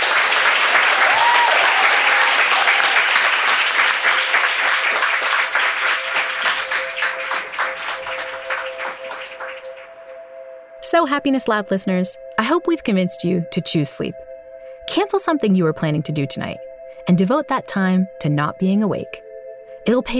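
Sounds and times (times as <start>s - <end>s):
live audience applause: 0.0s - 10.0s
speech: 11.0s - 14.3s, 14.9s - 19.2s, 19.8s - 20.1s.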